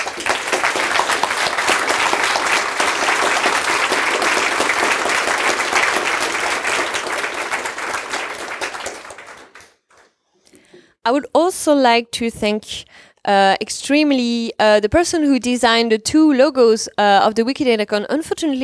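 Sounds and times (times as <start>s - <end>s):
audience applause: 0.0s - 10.1s
speech: 11.1s - 18.6s.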